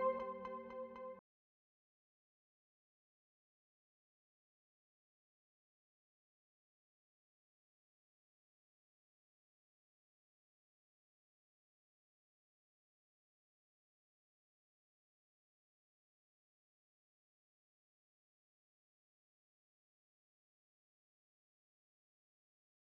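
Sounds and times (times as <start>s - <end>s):
plucked note: 0.0s - 1.2s.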